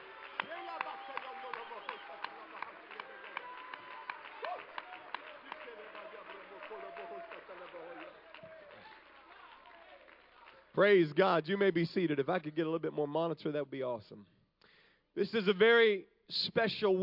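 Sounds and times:
crowd shouting praise: 0.0 - 10.8
audience clapping hands: 0.0 - 12.6
speech: 10.8 - 14.4, 15.2 - 17.0.

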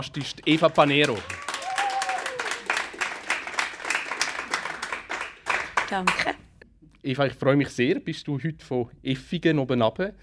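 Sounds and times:
speech: 0.0 - 1.4, 5.9 - 6.4, 7.0 - 10.2
audience applause: 0.0 - 6.4.

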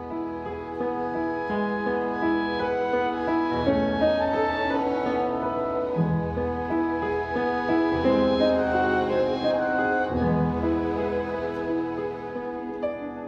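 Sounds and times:
film theme music: 0.0 - 13.2.

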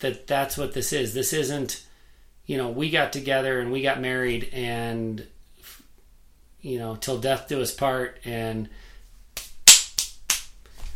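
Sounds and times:
speech: 0.0 - 1.9, 2.5 - 5.8, 6.6 - 8.9
hands clapping dust off: 9.4 - 10.6.

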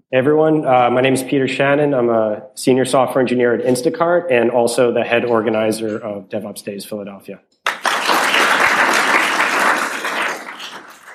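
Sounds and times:
speech: 0.1 - 7.6
crowd applause: 7.7 - 11.1.

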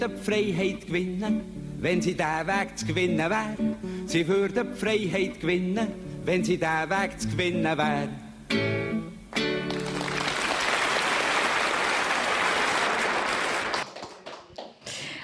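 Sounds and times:
speech: 0.0 - 8.8
audience applause after song: 9.6 - 14.9.

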